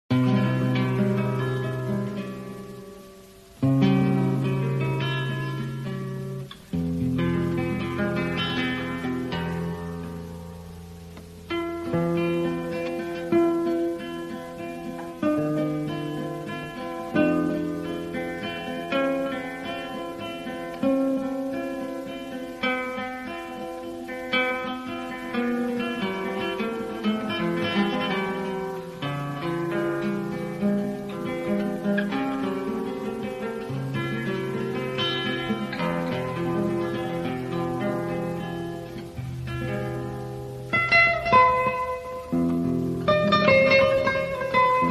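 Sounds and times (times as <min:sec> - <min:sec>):
guitar: 0:00.0 - 0:44.9.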